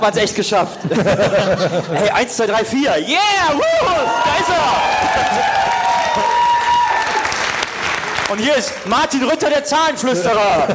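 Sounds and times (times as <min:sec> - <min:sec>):
speech: 0:00.0 - 0:06.4, 0:08.3 - 0:10.7
laughter: 0:00.7 - 0:02.3, 0:10.3 - 0:10.7
crowd cheering: 0:03.4 - 0:09.3
crowd applause: 0:04.0 - 0:09.3.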